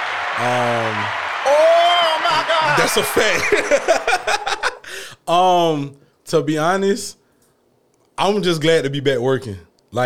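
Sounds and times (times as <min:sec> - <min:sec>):
round of applause: 0:00.0 - 0:03.6
speech: 0:00.4 - 0:07.2, 0:08.2 - 0:10.0
laughter: 0:02.4 - 0:04.9.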